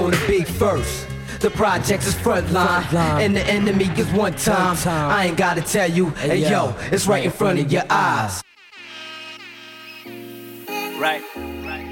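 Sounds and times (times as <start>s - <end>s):
speech: 0.2s - 8.5s, 11.0s - 11.5s
front gate buzzer buzzing: 8.5s - 11.6s.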